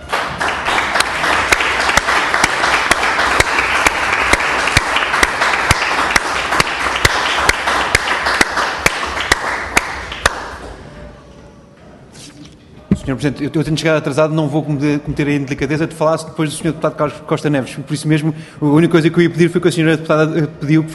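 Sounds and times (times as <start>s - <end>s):
round of applause from many hands: 0.0s - 10.8s
sharp louder claps at a regular rhythm: 0.0s - 10.8s
speech: 13.1s - 20.9s.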